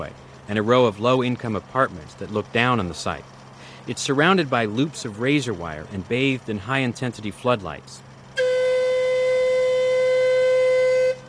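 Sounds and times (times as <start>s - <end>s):
speech: 0.0s - 8.1s
warning whistle before a dynamite blast: 8.4s - 11.2s.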